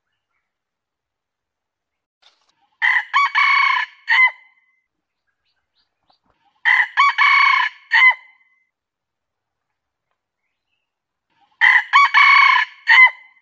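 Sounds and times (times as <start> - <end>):
junglefowl crowing: 2.8 - 4.4, 6.6 - 8.3, 11.6 - 13.3.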